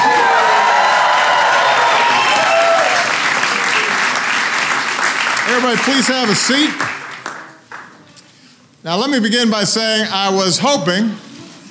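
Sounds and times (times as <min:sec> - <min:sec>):
audience at the White House applauding the Golden State Warriors: 0:00.0 - 0:08.0
speech: 0:05.5 - 0:07.0, 0:08.8 - 0:11.4.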